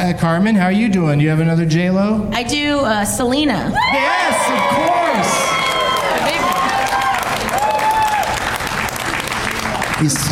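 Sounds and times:
speech: 0:00.0 - 0:05.5, 0:10.0 - 0:10.2
audience applause: 0:04.0 - 0:10.2.

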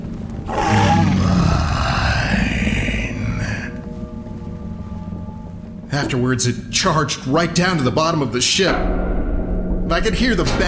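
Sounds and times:
creature growling: 0:00.5 - 0:03.8
speech: 0:06.0 - 0:09.2, 0:09.9 - 0:10.6.

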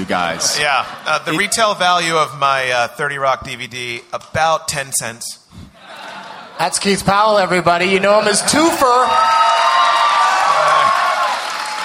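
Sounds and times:
laughter: 0:00.0 - 0:02.7, 0:05.8 - 0:09.0
speech: 0:00.0 - 0:05.4, 0:06.6 - 0:09.6
crowd clapping and cheering: 0:08.9 - 0:11.8
whoops: 0:09.1 - 0:11.8.

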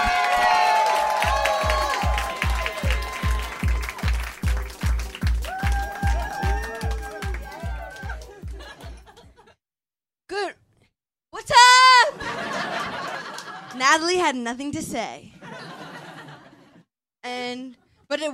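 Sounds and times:
audience clapping and cheering: 0:00.0 - 0:09.4, 0:12.7 - 0:13.8
laughter: 0:06.8 - 0:09.6, 0:12.1 - 0:13.8, 0:15.4 - 0:16.8
speech: 0:14.0 - 0:15.4, 0:17.3 - 0:18.3.

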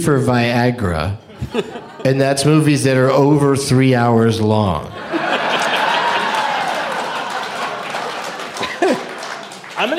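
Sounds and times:
speech: 0:00.0 - 0:05.3, 0:09.8 - 0:09.9
laughter: 0:01.3 - 0:02.5, 0:04.8 - 0:09.7
applause: 0:05.5 - 0:09.9.

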